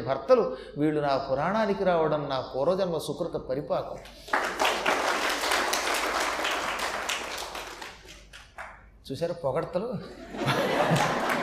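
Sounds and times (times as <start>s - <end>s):
speech: 0.0s - 4.6s, 9.1s - 11.2s
audience clapping at a Telugu religious discourse: 4.0s - 8.9s, 10.4s - 11.4s
laughter: 10.1s - 11.4s.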